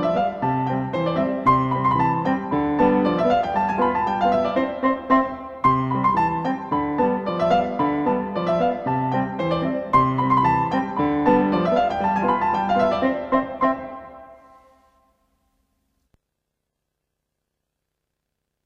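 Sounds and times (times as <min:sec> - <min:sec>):
polka music: 0:00.0 - 0:14.4.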